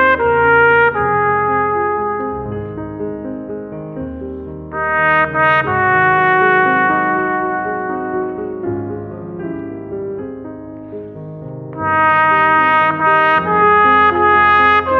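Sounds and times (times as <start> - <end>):
trumpet: 0.0 - 2.6, 4.7 - 8.8, 11.8 - 14.9.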